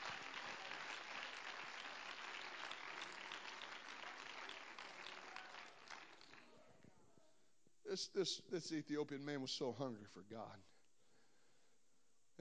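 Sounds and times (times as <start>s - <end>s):
audience clapping hands: 0.0s - 6.6s
speech: 7.9s - 10.8s.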